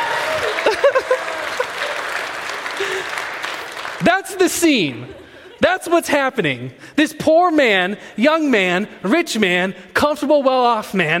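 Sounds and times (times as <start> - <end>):
laughter: 0.0 - 3.3, 4.7 - 6.0
audience round of applause: 0.0 - 5.1
speech: 4.2 - 11.1.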